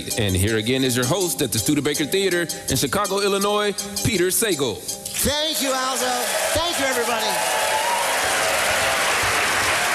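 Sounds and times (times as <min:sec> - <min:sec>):
speech: 0:00.0 - 0:07.7
theater audience applauding at the Studebaker Theater in Chicago: 0:05.8 - 0:09.9.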